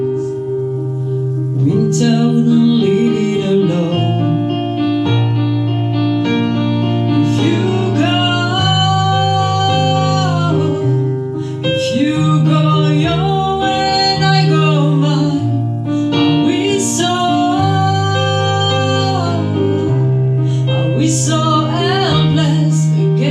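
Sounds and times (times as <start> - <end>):
piano: 0.0 - 23.2
person singing: 1.4 - 5.0, 7.0 - 23.2.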